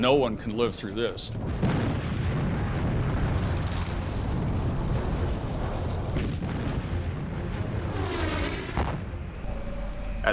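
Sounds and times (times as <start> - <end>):
speech: 0.0 - 1.9
naval bombardment explosions before a Marine beach assault: 1.4 - 9.4.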